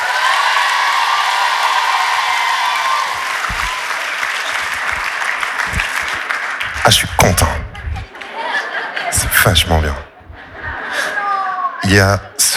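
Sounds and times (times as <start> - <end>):
concert audience in Saint-Étienne applauding and cheering: 0.0 - 11.8
laughter: 1.4 - 12.5
low thumps: 3.1 - 3.8, 4.6 - 8.2, 10.1 - 10.9
speech: 6.9 - 7.6, 9.4 - 10.0, 11.9 - 12.5.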